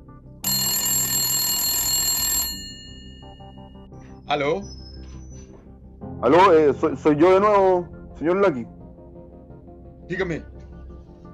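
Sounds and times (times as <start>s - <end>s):
office telephone ringing: 0.4s - 3.8s
speech: 4.3s - 4.8s, 6.2s - 8.8s, 10.1s - 10.5s.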